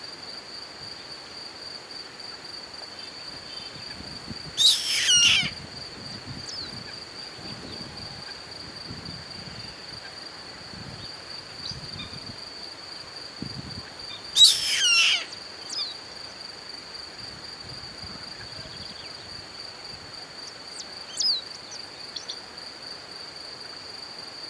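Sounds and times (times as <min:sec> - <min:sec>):
bird rasping call: 0:04.6 - 0:05.5, 0:14.4 - 0:15.4.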